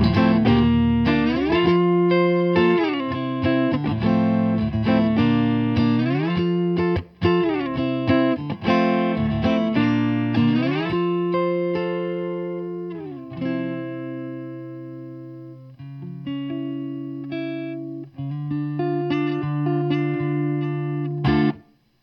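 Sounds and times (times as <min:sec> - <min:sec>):
Fender Telecaster through Rohr 15 1x12 combo amplifier: 0:00.0 - 0:21.7.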